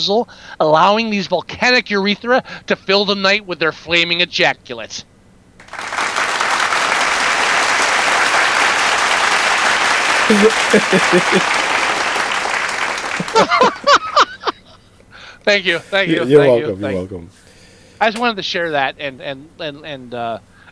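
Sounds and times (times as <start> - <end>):
speech: 0.0 - 5.1, 10.3 - 11.6, 15.4 - 17.4, 18.0 - 20.5
audience applause: 5.6 - 14.1
laughter: 7.2 - 9.6, 10.3 - 11.7, 13.0 - 14.8, 15.5 - 17.2
audience shouting and whooping: 13.2 - 14.1.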